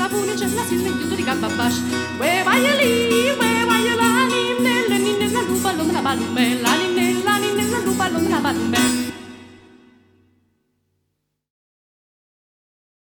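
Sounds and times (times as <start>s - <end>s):
tarantella dance music: 0.0s - 9.3s.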